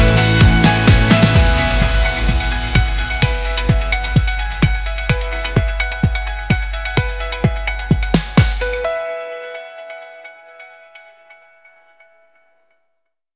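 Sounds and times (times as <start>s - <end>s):
inspirational corporate background music: 0.0s - 9.4s.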